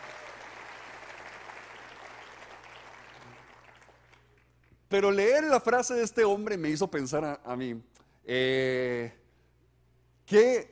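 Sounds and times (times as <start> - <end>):
audience applause: 0.0 - 4.4
speech: 4.9 - 9.2, 10.3 - 10.7.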